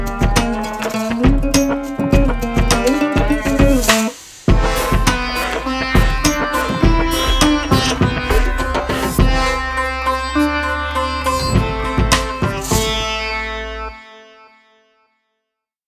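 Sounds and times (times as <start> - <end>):
rare ethnic world stringed instrument playing: 0.0 - 15.0.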